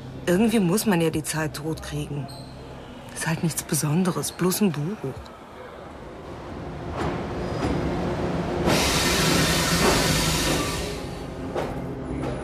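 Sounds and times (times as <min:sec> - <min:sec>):
speech: 0:00.3 - 0:02.5, 0:03.2 - 0:05.4
train starting to move at a platform: 0:05.5 - 0:12.4.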